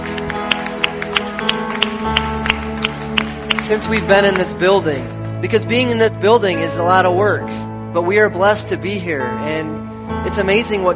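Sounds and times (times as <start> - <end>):
audience applause: 0.0 - 4.6
speech: 3.7 - 10.9.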